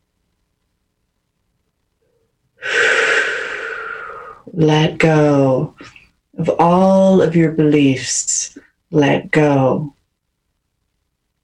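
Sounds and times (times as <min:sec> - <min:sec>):
deep breath during guided meditation: 0:02.6 - 0:04.5
speech: 0:04.4 - 0:10.0.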